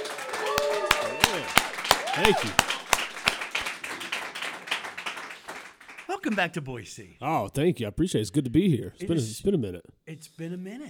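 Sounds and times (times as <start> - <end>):
live audience applauding: 0.0 - 6.7
speech: 2.2 - 2.7, 6.2 - 10.8.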